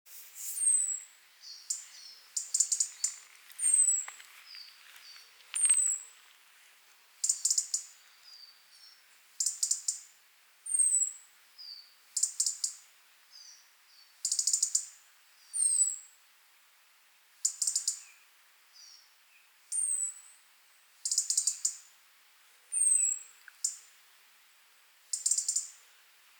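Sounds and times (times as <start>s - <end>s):
faint background hiss: 0.1s - 26.3s
European robin ticking and whistling: 0.6s - 4.7s, 5.6s - 6.1s, 7.2s - 8.5s, 9.4s - 10.1s, 14.2s - 14.9s, 15.6s - 16.0s, 17.4s - 18.0s, 21.0s - 21.8s, 22.7s - 23.8s, 25.1s - 25.8s.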